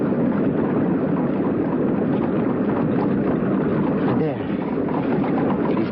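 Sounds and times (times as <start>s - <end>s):
rushing water under a bridge: 0.0s - 5.9s.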